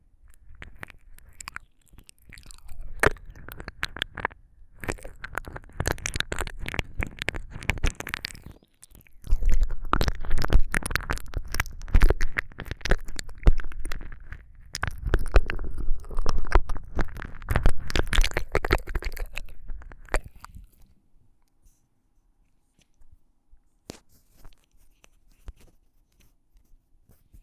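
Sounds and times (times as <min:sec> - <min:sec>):
ASMR ear licking sounds: 0:00.2 - 0:20.8.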